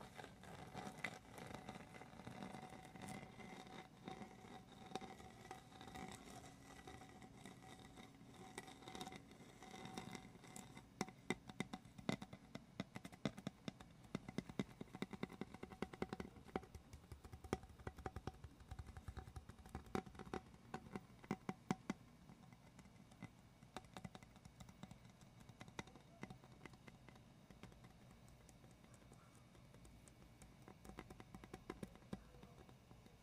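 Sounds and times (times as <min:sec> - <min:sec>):
gentle tapping: 0:00.0 - 0:33.2.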